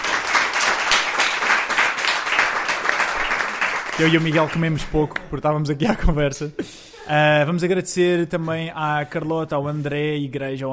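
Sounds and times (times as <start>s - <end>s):
crowd applauding: 0.0s - 4.8s
speech: 4.0s - 10.7s.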